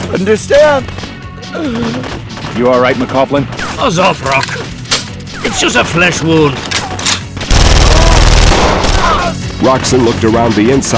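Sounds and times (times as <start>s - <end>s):
speech: 0.1s - 4.6s, 5.4s - 6.7s, 9.6s - 10.9s
steady barrage of gunfire from an enemy force in a battle: 6.8s - 10.2s.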